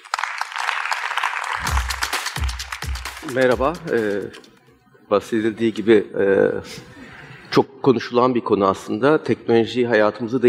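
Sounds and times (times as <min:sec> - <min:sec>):
audience applause: 0:00.0 - 0:04.1
speech: 0:03.2 - 0:04.5, 0:05.1 - 0:10.4.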